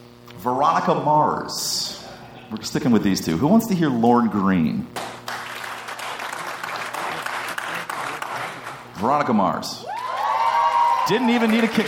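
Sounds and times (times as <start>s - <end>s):
speech: 0.4s - 5.0s, 9.0s - 9.9s, 11.1s - 11.8s
audience applause: 5.0s - 8.9s, 9.9s - 11.8s.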